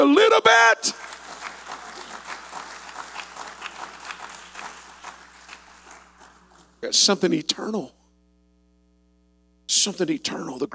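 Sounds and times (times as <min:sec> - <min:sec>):
speech: 0:00.0 - 0:01.1, 0:06.9 - 0:08.0, 0:09.8 - 0:10.7
hand clapping: 0:00.9 - 0:06.8.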